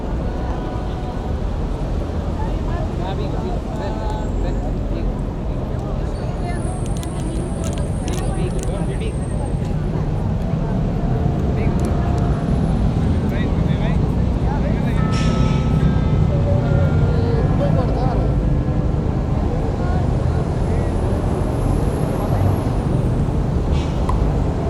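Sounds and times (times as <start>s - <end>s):
foreign students chattering in a garden: 0.0s - 23.5s
city traffic: 0.0s - 24.6s
Big Ben clock bell chiming: 14.9s - 18.0s.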